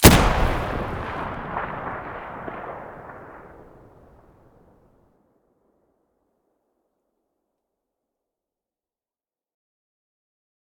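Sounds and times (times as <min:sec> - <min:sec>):
M700 rifle muzzle blast: 0:00.0 - 0:04.1.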